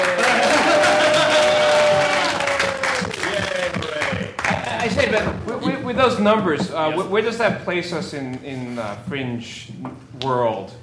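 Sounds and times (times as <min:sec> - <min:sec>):
voices cheering and whooping: 0:00.0 - 0:04.1
audience applause: 0:00.0 - 0:05.6
speech: 0:06.0 - 0:10.8.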